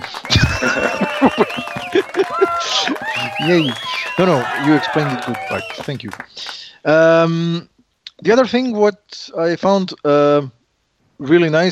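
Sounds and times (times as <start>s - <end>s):
laughter: 0.0s - 6.2s
applause jingle: 0.0s - 6.3s
speech: 3.4s - 10.6s, 11.2s - 11.6s.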